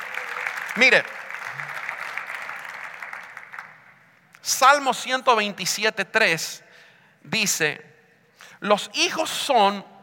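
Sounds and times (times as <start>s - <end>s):
church congregation applauding: 0.0s - 4.2s
speech: 0.8s - 1.2s, 4.5s - 6.6s, 7.2s - 7.9s, 8.6s - 9.9s.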